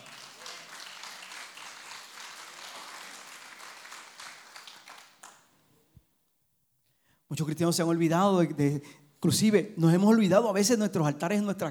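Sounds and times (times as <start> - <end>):
audience applause: 0.0 - 5.4
speech: 7.3 - 11.7.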